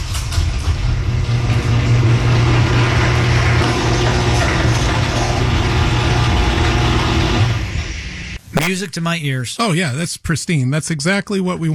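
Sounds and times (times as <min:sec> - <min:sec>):
garage door gliding on nylon rollers: 0:00.0 - 0:07.9
speech: 0:08.7 - 0:11.7.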